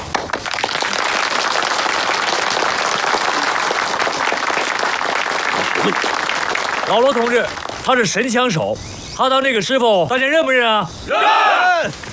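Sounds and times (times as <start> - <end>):
group applauding: 0.0 - 8.3
speech: 5.8 - 6.1, 6.9 - 12.0.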